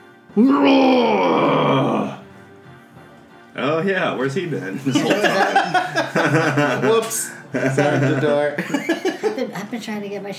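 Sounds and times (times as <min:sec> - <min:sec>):
person voicing a monster's roar: 0:00.4 - 0:02.2
speech: 0:00.4 - 0:02.2, 0:03.6 - 0:10.3
laughter: 0:04.6 - 0:09.6.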